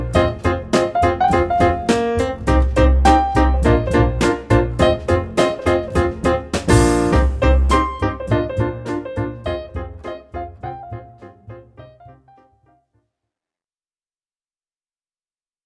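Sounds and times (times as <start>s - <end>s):
jazz trio playing: 0.0s - 12.0s.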